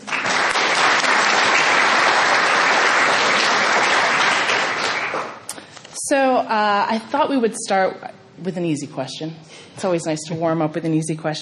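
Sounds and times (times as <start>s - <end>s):
audience applause welcoming a panel of chefs: 0.0s - 5.5s
speech: 6.1s - 11.3s.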